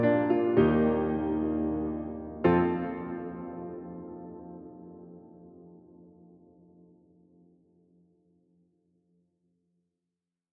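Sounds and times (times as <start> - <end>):
instrumental mix: 0.0 - 6.5.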